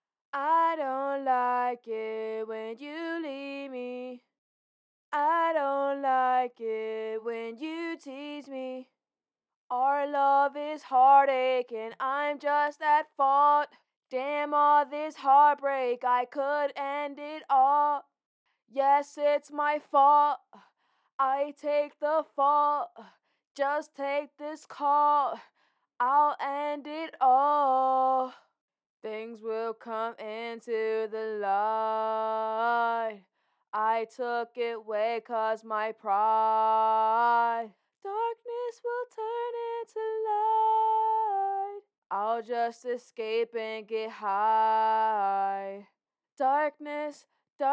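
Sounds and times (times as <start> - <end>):
pop rock a cappella vocals in D minor at 105 BPM: 0.3 - 4.3, 5.1 - 9.0, 9.7 - 18.1, 18.7 - 47.7.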